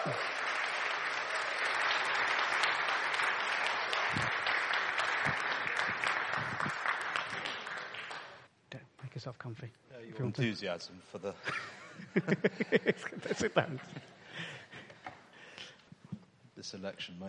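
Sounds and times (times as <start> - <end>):
audience applause welcoming a parliamentary candidate: 0.0 - 8.5
speech: 0.1 - 0.3, 9.2 - 14.5, 16.7 - 17.2
laughter: 11.4 - 15.0.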